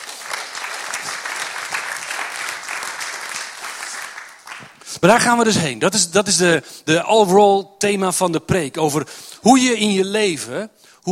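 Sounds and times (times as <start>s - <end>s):
audience applause: 0.0s - 4.8s
speech: 5.0s - 11.0s.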